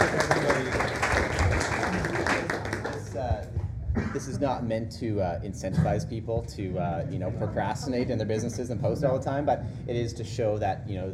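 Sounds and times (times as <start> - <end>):
applause: 0.0 - 3.3
speech: 4.2 - 11.1.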